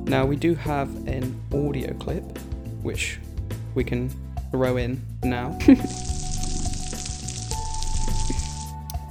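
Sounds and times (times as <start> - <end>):
speech: 0.1 - 6.3
snapping shrimp crackling on an underwater coral reef: 5.9 - 9.0.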